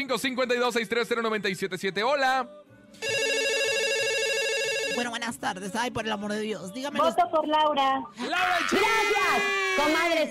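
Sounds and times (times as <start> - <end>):
speech: 0.0 - 3.2, 5.0 - 10.3
telephone ringing with incoming call: 3.0 - 5.4.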